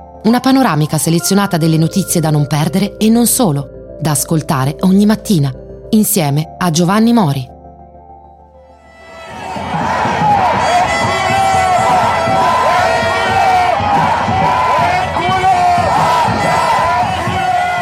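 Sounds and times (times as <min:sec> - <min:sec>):
speech: 0:00.2 - 0:07.5
protest crowd in Israel chanting against the Netanyahu government: 0:09.3 - 0:17.8.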